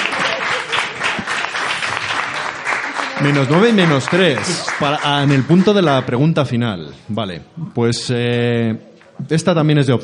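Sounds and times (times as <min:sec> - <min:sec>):
audience applause: 0:00.0 - 0:06.3
speech: 0:03.2 - 0:10.0.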